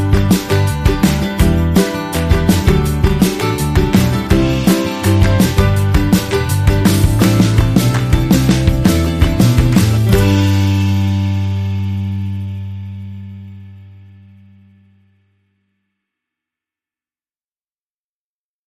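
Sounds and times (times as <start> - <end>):
piano: 0.0 - 13.5.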